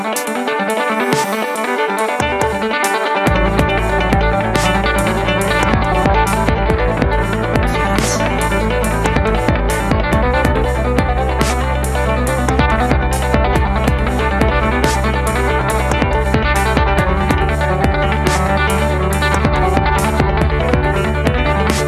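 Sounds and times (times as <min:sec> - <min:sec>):
electronic music: 0:00.0 - 0:21.8.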